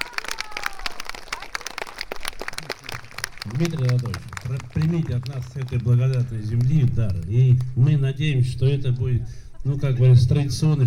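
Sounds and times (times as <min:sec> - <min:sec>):
audience applause: 0:00.0 - 0:07.7
speech: 0:03.4 - 0:10.8.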